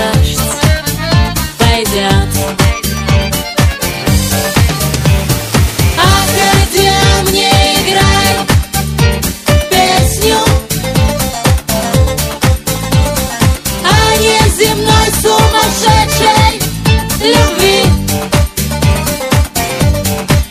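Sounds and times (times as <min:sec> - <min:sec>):
accordion: 0:00.1 - 0:20.4.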